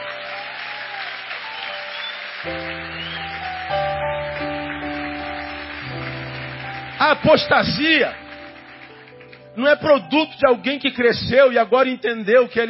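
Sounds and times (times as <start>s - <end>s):
audience applauding: 0.0s - 10.1s
speech: 2.4s - 2.8s, 7.1s - 8.2s, 9.6s - 12.6s.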